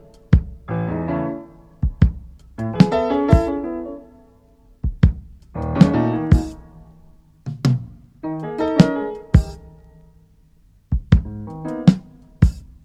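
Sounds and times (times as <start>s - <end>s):
piano: 0.0s - 12.8s
hip hop breakbeat drums: 0.1s - 0.8s, 1.8s - 3.6s, 4.8s - 6.8s, 8.8s - 9.9s, 10.9s - 12.8s.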